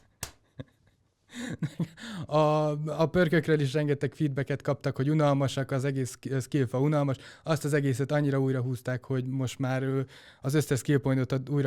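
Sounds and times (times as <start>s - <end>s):
hand claps: 0.0s - 0.6s
speech: 1.4s - 11.6s.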